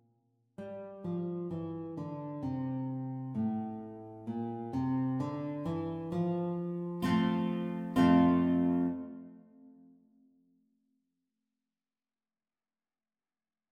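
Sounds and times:
guitar duet playalong practice: 0.6 - 9.8.

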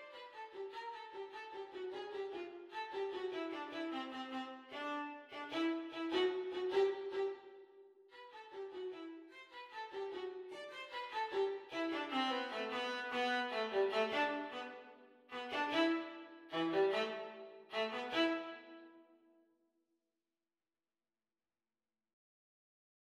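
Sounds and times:
viola duet at exam speed: 0.0 - 7.5, 8.1 - 18.8.

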